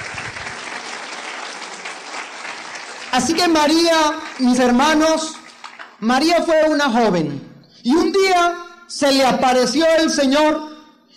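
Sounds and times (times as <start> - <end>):
audience applause: 0.0 - 6.0
speech: 3.1 - 5.4, 6.0 - 10.7.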